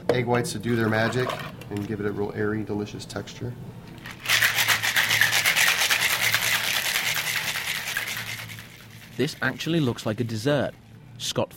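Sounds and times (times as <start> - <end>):
speech: 0.1 - 4.2, 9.2 - 11.5
cocktail shaker shaken with ice: 4.0 - 10.9.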